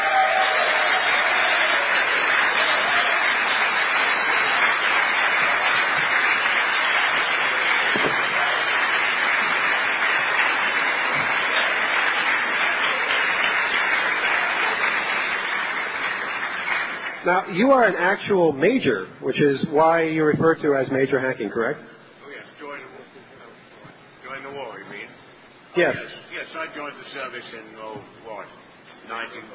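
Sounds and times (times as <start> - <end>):
audience applause: 0.0 - 17.4
speech: 17.3 - 22.0, 25.8 - 28.4, 29.1 - 29.5.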